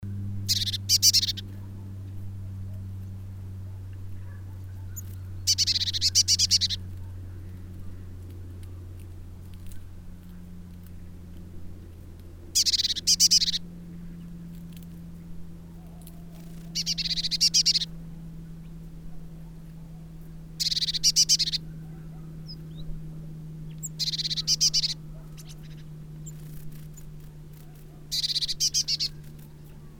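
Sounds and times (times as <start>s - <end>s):
steady low hum: 0.0s - 29.9s
Eurasian blue tit churring scolding calls: 0.4s - 1.6s, 4.2s - 8.2s, 12.5s - 14.9s, 15.8s - 18.0s, 18.6s - 22.9s, 23.6s - 29.9s.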